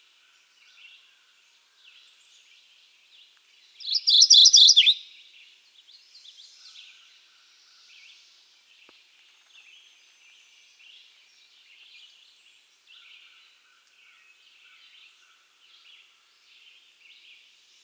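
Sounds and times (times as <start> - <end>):
Mourning Warbler Geothlypis philadelphia song: 0.0 - 17.8.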